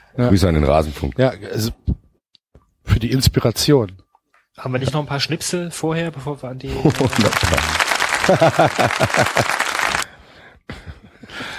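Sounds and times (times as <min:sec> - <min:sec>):
speech: 0:00.1 - 0:02.0, 0:03.0 - 0:04.0, 0:04.6 - 0:09.8
laughter: 0:06.7 - 0:10.0
applause sound effect: 0:06.9 - 0:10.1.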